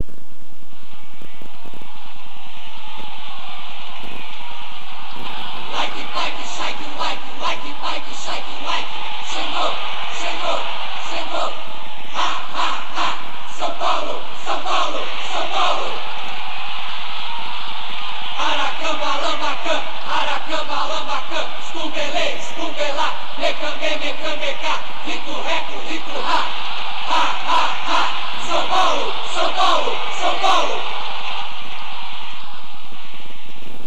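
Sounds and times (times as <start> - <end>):
traditional war cries: 5.3 - 17.5, 18.2 - 32.6.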